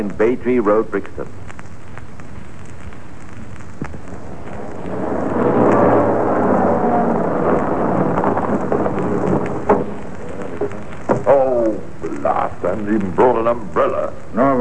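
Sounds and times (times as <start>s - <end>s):
speech: 0.0s - 1.4s, 12.9s - 14.5s
heavy rain: 2.1s - 14.5s
thunder rumbling: 2.4s - 13.3s
sharp knocks: 7.2s - 11.4s.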